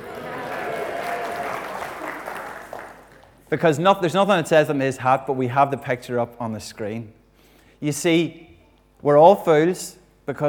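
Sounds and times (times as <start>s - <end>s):
audience cheering: 0.0s - 3.2s
speech: 3.5s - 7.2s, 7.8s - 10.4s.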